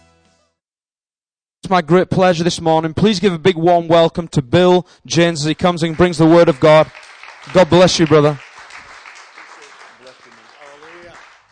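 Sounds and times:
speech: 1.7 - 8.4
audience applause: 5.4 - 11.5.

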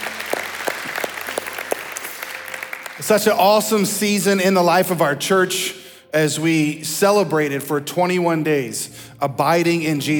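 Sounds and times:
crowd clapping: 0.0 - 4.0
speech: 3.0 - 10.1.

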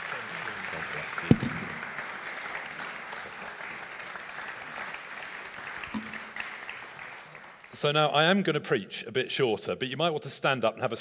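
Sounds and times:
audience applause: 0.0 - 8.0
speech: 7.8 - 10.9.

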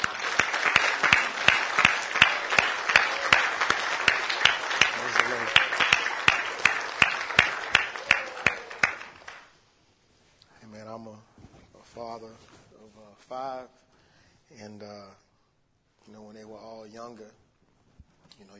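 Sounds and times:
audience clapping for the fathers: 0.0 - 9.5.

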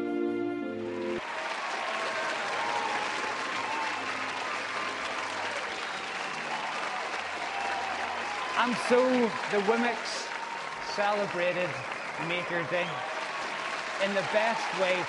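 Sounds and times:
music: 0.0 - 1.2
crowd cheering and clapping: 0.0 - 15.0
speech: 8.6 - 10.3, 11.0 - 13.1, 14.0 - 15.0.

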